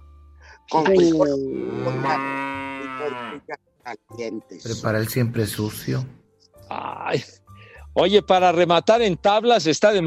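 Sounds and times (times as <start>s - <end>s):
speech: 0.7s - 7.4s, 8.0s - 10.0s
cow mooing sound effect: 1.5s - 3.6s.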